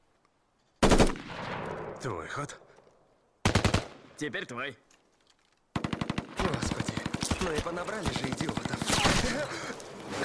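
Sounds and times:
speech: 2.0 - 2.7, 4.2 - 4.9, 7.4 - 10.2
rapid gunfire burst: 3.4 - 3.9, 5.8 - 9.2.

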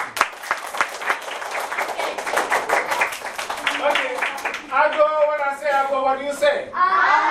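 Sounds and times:
group clapping hands: 0.0 - 5.6
speech: 5.8 - 7.2.

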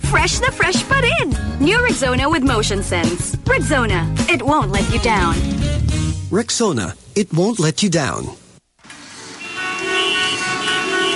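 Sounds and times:
speech: 0.2 - 8.4
traffic noise: 8.9 - 11.1
car horns honking in traffic: 9.1 - 11.1.

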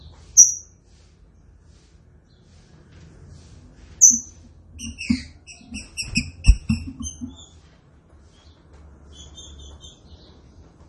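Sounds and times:
green-winged saltator whistled song: 0.4 - 0.7, 4.0 - 7.5.

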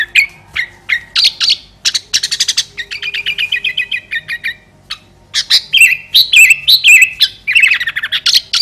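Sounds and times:
sooty-headed bulbul song in fierce style: 0.0 - 8.5.

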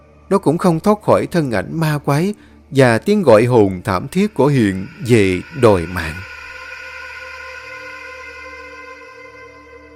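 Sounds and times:
speech: 0.3 - 6.3
alarm clock ringing: 3.3 - 6.6.

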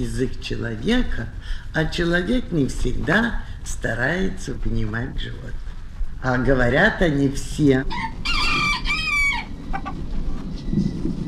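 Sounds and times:
speech: 0.0 - 5.6, 6.2 - 8.2
rooster crowing: 7.9 - 10.0.

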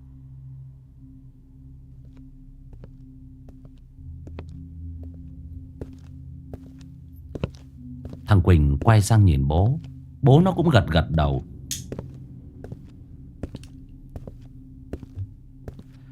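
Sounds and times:
steady low hum: 0.0 - 16.1
heavy thudding footsteps following a father and son: 2.0 - 8.4, 11.6 - 16.1
speech: 8.3 - 11.5.

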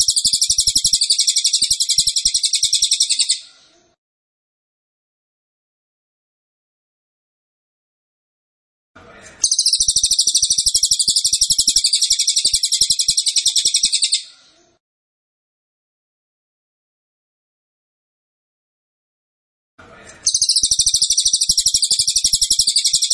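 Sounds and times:
cililin singing a metallic trill: 0.0 - 3.4, 9.4 - 14.3, 20.3 - 23.1.

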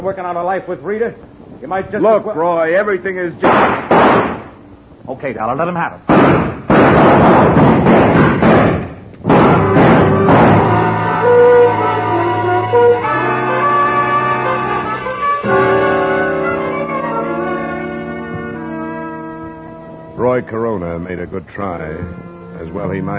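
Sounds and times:
speech: 0.0 - 4.3, 5.1 - 8.2, 20.4 - 23.1
gunshots in an old-time radio crime drama: 3.4 - 4.6, 6.1 - 11.2
dramatic orchestral music: 9.5 - 20.4.

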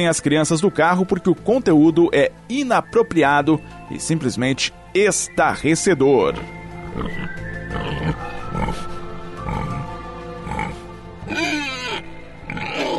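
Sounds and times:
speech: 0.0 - 8.9
pig grunting and oinking: 6.4 - 8.8, 9.4 - 12.9.

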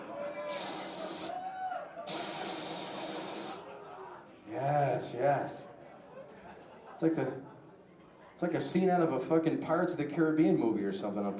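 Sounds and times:
speech: 0.5 - 0.7, 5.0 - 5.7, 7.0 - 7.5, 8.4 - 11.3
stage steam machine hissing: 0.5 - 1.4, 2.1 - 3.7
laughter: 2.0 - 4.3, 5.5 - 8.3.

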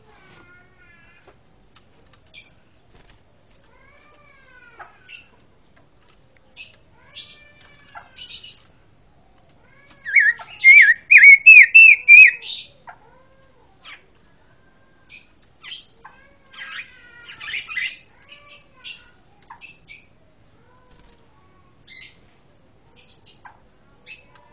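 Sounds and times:
Pancawarna chirps and whistles: 10.1 - 12.6.

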